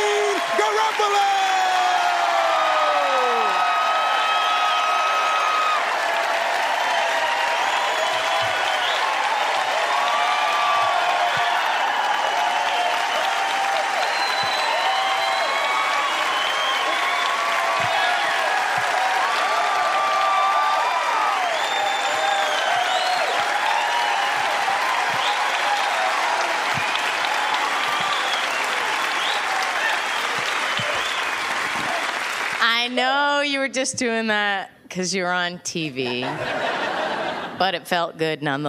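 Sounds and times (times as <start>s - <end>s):
audience applause welcoming a comedian at the Fillmore in San Francisco: 0.0s - 33.3s
speech: 0.8s - 1.4s, 33.8s - 36.8s, 37.6s - 38.6s
audience whistles: 7.6s - 9.1s, 14.0s - 17.4s, 21.3s - 24.5s, 25.1s - 25.6s, 27.8s - 31.4s
laughter: 36.0s - 37.7s.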